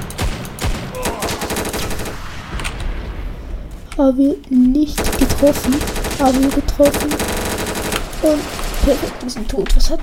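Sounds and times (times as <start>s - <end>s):
video game automatic gunfire: 0.0s - 2.5s, 5.0s - 9.3s
speech: 4.0s - 7.3s, 8.2s - 10.0s.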